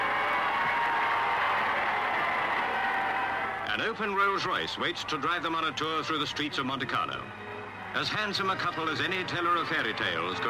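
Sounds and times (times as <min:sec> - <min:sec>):
large crowd cheering and applauding: 0:00.0 - 0:04.4
speech: 0:03.8 - 0:10.4.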